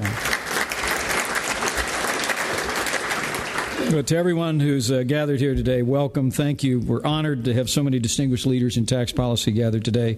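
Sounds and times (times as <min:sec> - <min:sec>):
audience applause: 0:00.0 - 0:03.9
speech: 0:03.9 - 0:10.1.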